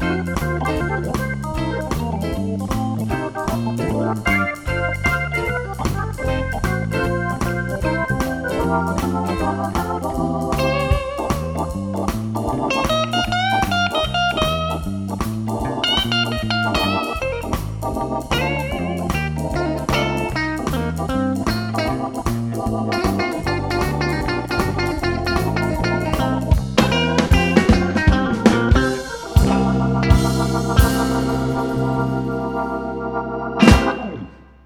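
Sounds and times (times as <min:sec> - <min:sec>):
blues guitar: 0:00.0 - 0:34.6.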